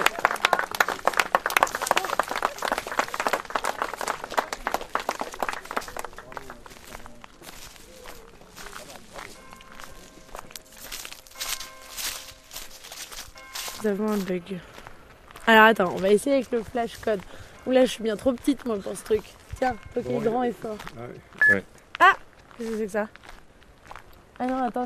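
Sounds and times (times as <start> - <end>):
audience applause: 0.0 - 7.2
speech: 13.8 - 14.7, 15.5 - 23.2, 24.4 - 24.8.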